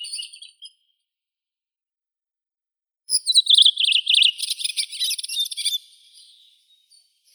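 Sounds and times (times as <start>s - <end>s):
redwing Turdus iliacus calling: 3.1s - 5.9s.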